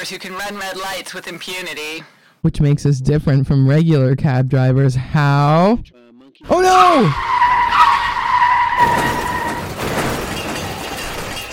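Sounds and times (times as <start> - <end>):
speech: 0.0 - 7.3
ambulance tires screeching: 6.5 - 11.5
ambulances colliding in a crash: 6.6 - 11.5.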